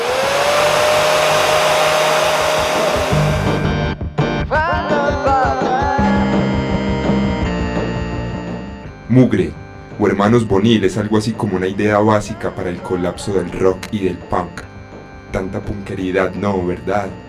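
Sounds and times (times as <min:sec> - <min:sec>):
hair dryer used as an instrument in experimental music: 0:00.0 - 0:03.7
pitched electronic-sounding musical notes: 0:00.0 - 0:17.2
speech: 0:09.2 - 0:14.5, 0:15.3 - 0:17.2.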